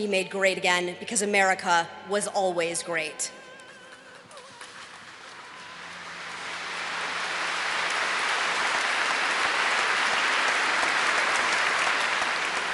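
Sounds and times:
speech: 0.0s - 3.4s
applause in a cathedral: 3.9s - 12.7s.

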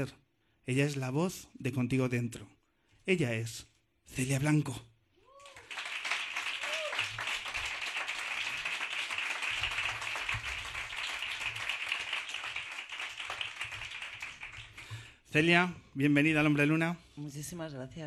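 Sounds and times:
speech: 0.0s - 4.9s, 15.3s - 18.0s
applause on a radio show: 5.3s - 15.4s.

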